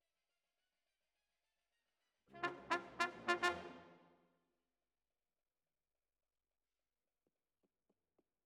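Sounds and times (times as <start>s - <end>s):
trumpet: 2.3s - 4.0s.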